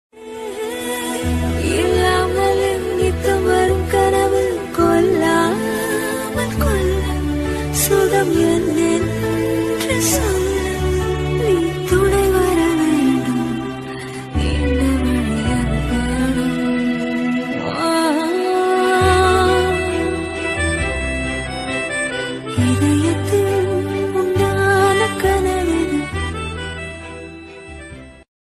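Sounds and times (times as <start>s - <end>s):
romantic Tamil song ringtone: 0.3s - 28.2s.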